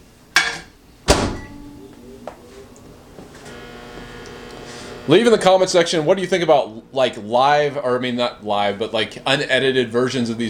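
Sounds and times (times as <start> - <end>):
putting food in the microwave: 1.1 - 5.7
speech: 5.1 - 10.4.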